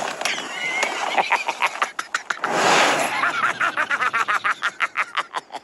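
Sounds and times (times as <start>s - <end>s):
laughing: 0.2s - 5.6s.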